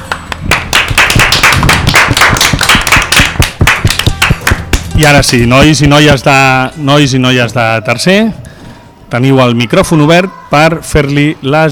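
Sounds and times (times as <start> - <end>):
audience applause: 0.1 - 4.8
speech: 5.0 - 8.4, 9.1 - 11.7.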